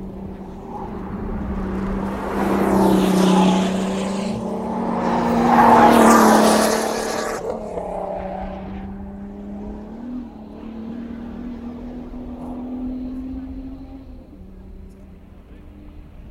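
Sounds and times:
Formula 1 car engine droning through a long left-hand bend: 0:00.0 - 0:16.2.

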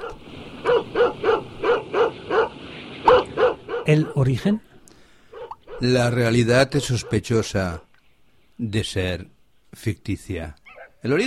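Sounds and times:
dog barking: 0:00.0 - 0:04.2, 0:05.3 - 0:05.9, 0:06.7 - 0:07.3, 0:10.7 - 0:11.0
speech: 0:03.9 - 0:04.7, 0:05.8 - 0:07.9, 0:08.6 - 0:11.2.

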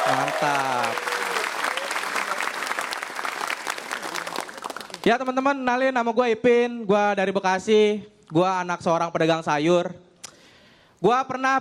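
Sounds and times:
Kompas TV studio audience applause: 0:00.0 - 0:05.4
speech: 0:00.1 - 0:01.4, 0:05.0 - 0:10.0, 0:11.0 - 0:11.5.

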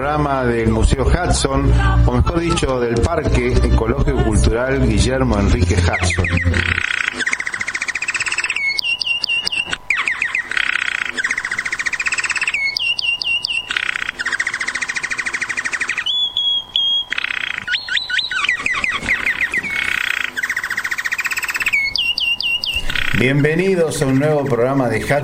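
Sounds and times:
speech: 0:00.2 - 0:06.9, 0:23.2 - 0:25.2
goldfinch singing: 0:02.1 - 0:25.0.

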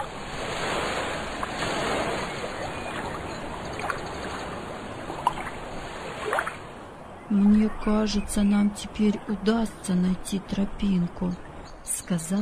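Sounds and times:
sea waves crashing on shore rocks: 0:00.0 - 0:06.8
speech: 0:07.3 - 0:12.4.

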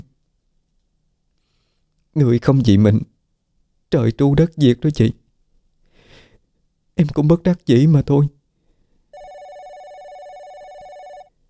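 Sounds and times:
speech: 0:02.2 - 0:03.1, 0:03.9 - 0:05.2, 0:07.0 - 0:08.4
telephone ringing with an electronic trill: 0:09.1 - 0:11.4.

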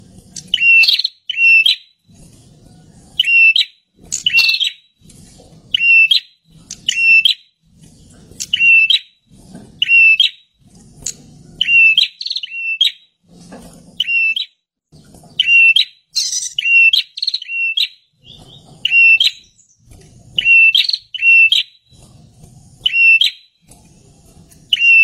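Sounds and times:
bird calling with short whistled notes: 0:00.4 - 0:02.0, 0:03.2 - 0:05.0, 0:05.7 - 0:07.5, 0:08.4 - 0:09.2, 0:09.8 - 0:10.5, 0:11.6 - 0:13.1, 0:14.0 - 0:14.6, 0:15.3 - 0:19.8, 0:20.4 - 0:21.9, 0:22.8 - 0:23.6, 0:24.7 - 0:25.0.

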